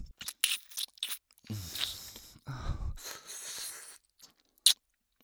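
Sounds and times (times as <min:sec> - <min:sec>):
ear licking wet slurping and smacking mouth sounds in Japanese-language ASMR: 0:00.2 - 0:02.3, 0:03.0 - 0:04.8.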